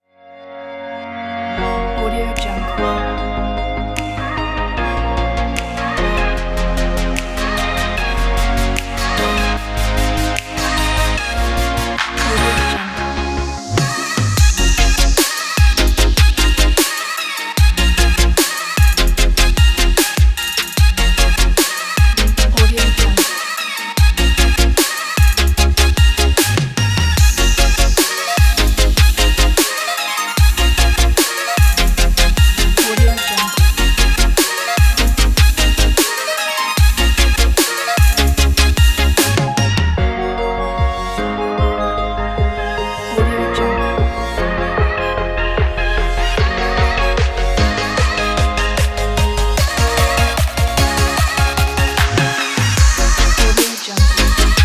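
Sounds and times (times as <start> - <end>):
future bass music: 1.6 - 54.6.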